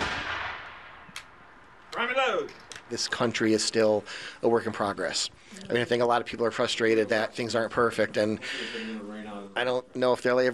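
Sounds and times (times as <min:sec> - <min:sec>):
gunfire volley on the command to fire: 0:00.0 - 0:01.6
sharp single gunshot cracks: 0:00.0 - 0:01.6
speech: 0:02.2 - 0:10.5.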